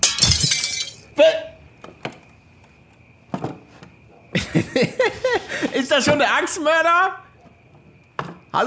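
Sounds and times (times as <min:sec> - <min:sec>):
window glass being smashed in: 0:00.0 - 0:01.1
laughter: 0:04.4 - 0:05.9
speech: 0:04.6 - 0:07.2.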